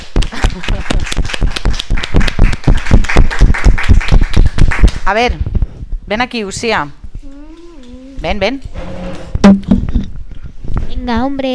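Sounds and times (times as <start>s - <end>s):
audience applause: 0.1s - 5.0s
speech: 0.6s - 1.1s, 5.1s - 5.5s, 6.1s - 7.0s, 8.2s - 8.8s, 11.1s - 11.5s.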